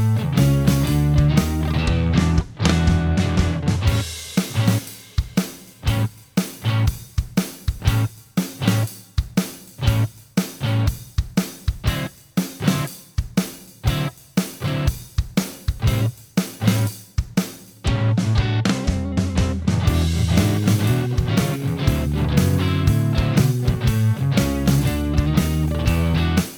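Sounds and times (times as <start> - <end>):
guitar: 0.0 - 5.0, 5.8 - 7.1, 7.8 - 9.0, 9.8 - 11.0, 11.8 - 13.0, 13.8 - 15.1, 15.8 - 17.0, 17.8 - 26.5
blues backing track: 0.0 - 26.5.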